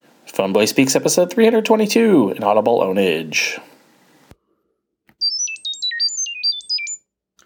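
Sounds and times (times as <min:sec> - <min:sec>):
speech: 0:00.4 - 0:03.7
Chirp.io audio data transmission chirps: 0:05.2 - 0:07.0.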